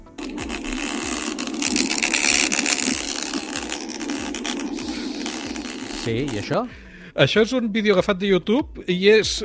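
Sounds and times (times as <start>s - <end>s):
iPhone 14 Pro Max camera lens noise: 0.0s - 6.6s
speech: 6.0s - 9.4s.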